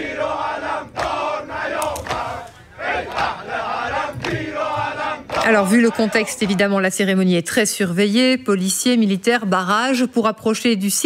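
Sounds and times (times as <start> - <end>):
large crowd chanting in support: 0.0 - 6.7
speech: 5.5 - 11.0.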